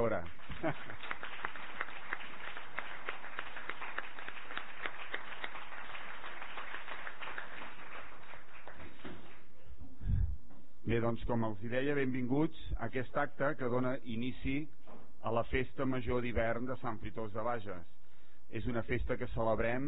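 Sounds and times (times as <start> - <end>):
audience applause: 0.0 - 9.5
speech: 0.1 - 1.0, 10.9 - 19.8
laughter: 0.5 - 1.2.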